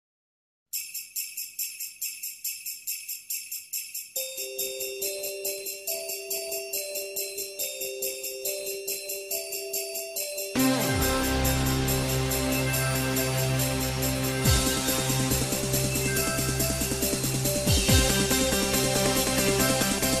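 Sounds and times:
christmas song remix: 0:00.8 - 0:20.1.

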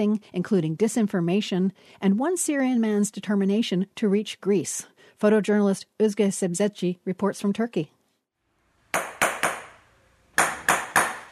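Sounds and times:
speech: 0:00.0 - 0:08.0
hammering a pair of black flats in a shoe workshop: 0:09.0 - 0:09.8, 0:10.4 - 0:11.3.

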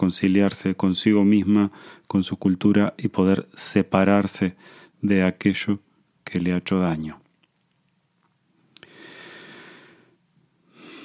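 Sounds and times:
speech: 0:00.0 - 0:07.2
deep breath in: 0:08.8 - 0:11.0.

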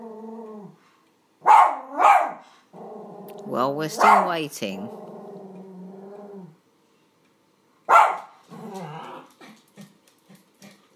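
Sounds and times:
poodle growling and barking: 0:00.0 - 0:00.8, 0:01.4 - 0:06.6, 0:07.9 - 0:10.9
speech: 0:03.5 - 0:05.1.

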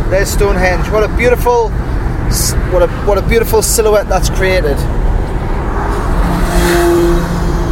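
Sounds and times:
speech: 0:00.1 - 0:05.0, 0:06.7 - 0:07.0
motorbike charging past: 0:05.0 - 0:07.7.

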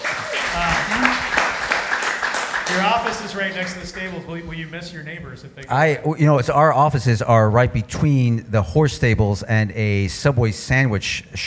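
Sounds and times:
audience applause: 0:00.0 - 0:04.2
speech: 0:02.7 - 0:11.4.

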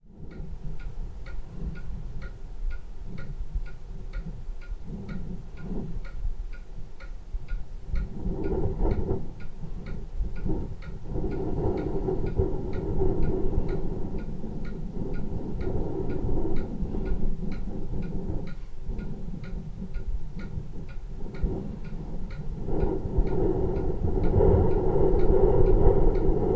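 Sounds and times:
clock ticking in a living room: 0:00.0 - 0:26.5
wind in the chimney: 0:00.0 - 0:26.5.

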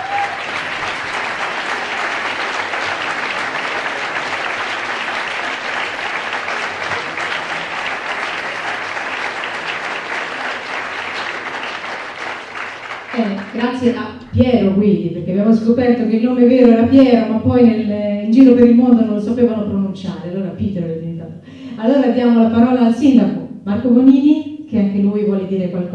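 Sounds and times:
audience applause: 0:00.0 - 0:13.7
speech: 0:13.6 - 0:20.8, 0:21.8 - 0:25.9.

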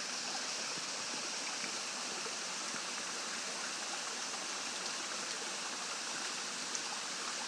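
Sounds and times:
waterfall: 0:00.0 - 0:07.4.

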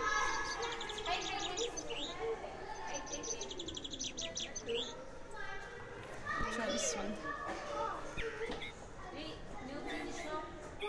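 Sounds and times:
squeezed toy bird making bullfinch call: 0:00.0 - 0:02.2, 0:02.8 - 0:04.9
children's voices: 0:00.0 - 0:10.8
lively chatter: 0:00.0 - 0:10.8.

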